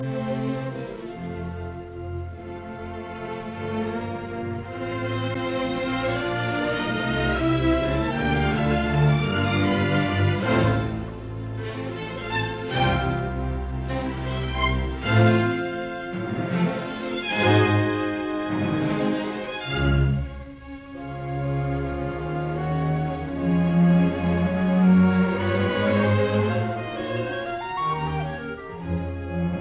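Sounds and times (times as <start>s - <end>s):
symphony in F major allegro con brio: 0.0s - 29.5s.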